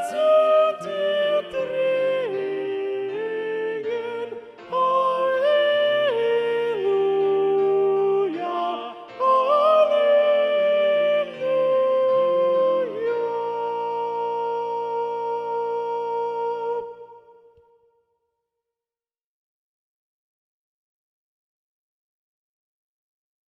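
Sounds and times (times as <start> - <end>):
soprano singing a motet: 0.0 - 17.6.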